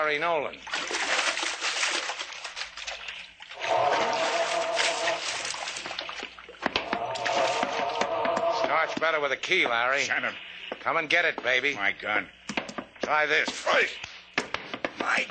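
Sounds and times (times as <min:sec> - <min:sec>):
speech: 0:00.0 - 0:01.0, 0:08.8 - 0:12.4, 0:13.0 - 0:14.0, 0:15.0 - 0:15.2
water splashing from someone swimming an overhand side stroke: 0:00.4 - 0:09.2.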